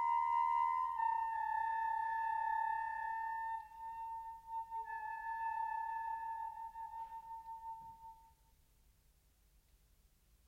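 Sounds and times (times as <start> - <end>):
wind quintet and double bass playing: 0.0 - 8.1.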